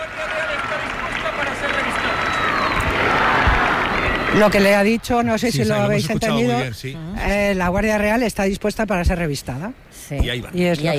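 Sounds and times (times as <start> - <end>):
large crowd applauding and cheering: 0.0 - 5.4
whistles: 1.9 - 4.4
speech: 4.4 - 10.9.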